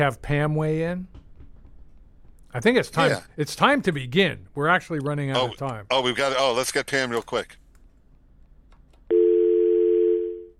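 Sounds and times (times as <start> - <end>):
speech: 0.0 - 1.2, 2.5 - 7.6
telephone dial tone while placing an outgoing call: 9.1 - 10.5.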